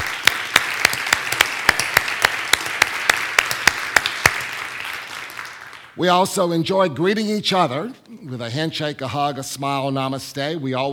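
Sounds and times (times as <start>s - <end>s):
audience applauding to welcome first-time guests at a spiritual service: 0.0s - 6.0s
speech: 6.0s - 10.9s.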